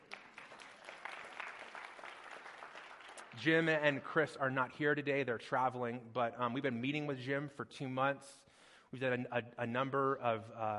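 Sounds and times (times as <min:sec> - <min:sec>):
audience applause: 0:00.0 - 0:03.8
speech: 0:03.4 - 0:10.7.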